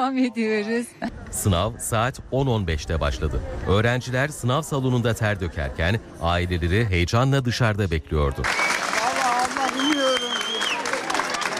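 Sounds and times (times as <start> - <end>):
speech: 0.0 - 8.7
families applauding students after exam: 8.4 - 11.5.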